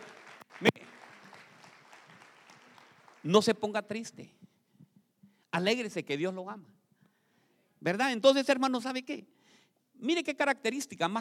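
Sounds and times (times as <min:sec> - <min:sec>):
audience applauding: 0:00.0 - 0:03.5
speech: 0:00.6 - 0:00.9, 0:03.2 - 0:04.4, 0:05.6 - 0:06.8, 0:07.8 - 0:09.4, 0:10.0 - 0:11.1.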